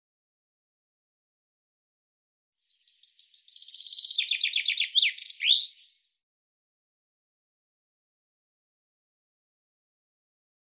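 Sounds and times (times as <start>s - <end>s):
common chaffinch song: 2.6s - 6.2s.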